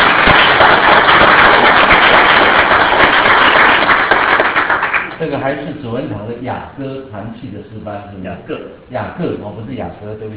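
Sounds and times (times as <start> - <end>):
crowd applauding: 0.0 - 5.2
speech: 5.5 - 10.3.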